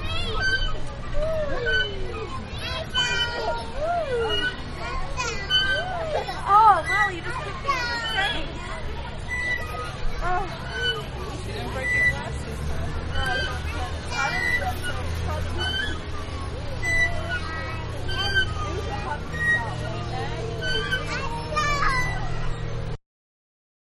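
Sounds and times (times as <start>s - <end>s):
children playing in a park playground: 0.0s - 23.0s
playground swings: 0.0s - 23.0s.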